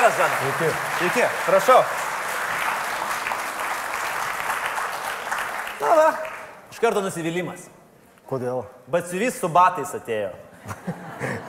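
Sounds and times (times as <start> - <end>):
speech: 0.0 - 2.1, 5.8 - 11.4
audience applause welcoming a shoe designer onto a show: 0.0 - 6.6
laughter: 10.6 - 11.4.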